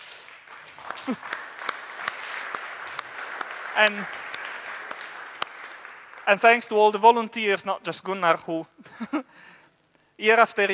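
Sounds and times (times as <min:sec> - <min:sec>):
audience applause: 0:00.0 - 0:07.0
speech: 0:01.0 - 0:01.4, 0:03.8 - 0:04.2, 0:06.3 - 0:09.6, 0:10.2 - 0:10.7.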